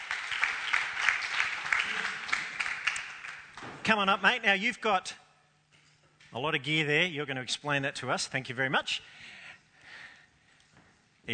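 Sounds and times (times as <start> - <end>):
crowd clapping: 0.0 - 3.9
speech: 3.9 - 5.2, 6.3 - 9.4.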